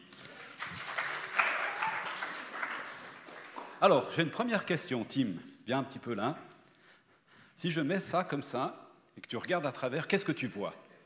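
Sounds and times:
audience applause: 0.4s - 3.8s
speech: 3.8s - 6.5s, 7.6s - 10.8s.

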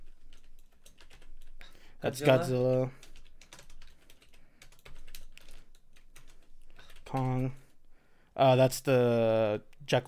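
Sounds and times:
typing on a computer keyboard: 0.0s - 1.6s, 3.0s - 7.5s
speech: 2.0s - 3.0s, 7.1s - 7.6s, 8.4s - 10.0s.

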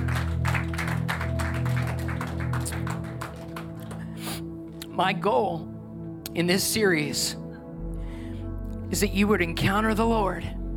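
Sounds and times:
audience applause: 0.0s - 4.1s
speech: 5.0s - 5.7s, 6.3s - 7.4s, 8.9s - 10.6s.

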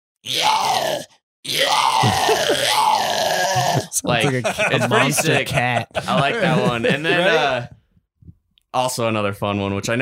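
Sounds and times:
speech: 0.2s - 2.7s, 3.9s - 7.8s, 8.7s - 10.0s
tunnel throat raspy vocal growl: 0.2s - 4.1s
laughter: 2.0s - 2.8s, 3.5s - 7.8s.

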